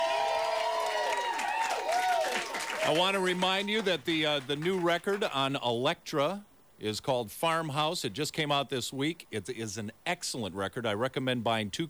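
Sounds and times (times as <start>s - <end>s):
live studio audience cheering at a radio session at Fantasy Studios: 0.0s - 5.3s
speech: 2.8s - 11.8s.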